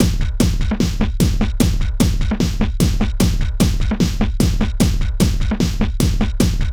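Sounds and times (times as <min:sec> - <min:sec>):
techno music: 0:00.0 - 0:06.7.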